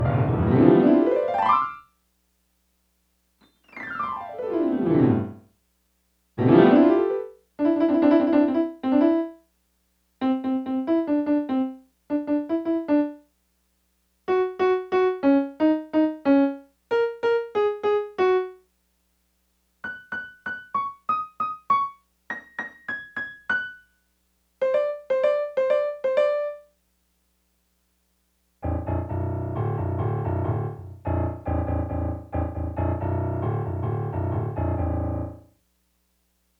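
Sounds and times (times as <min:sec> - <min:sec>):
Casio CDP-100 digital piano: 0:00.0 - 0:01.8, 0:03.4 - 0:05.4, 0:06.4 - 0:09.4, 0:10.2 - 0:13.2, 0:14.3 - 0:18.6, 0:19.8 - 0:23.9, 0:24.6 - 0:26.7, 0:28.6 - 0:35.5.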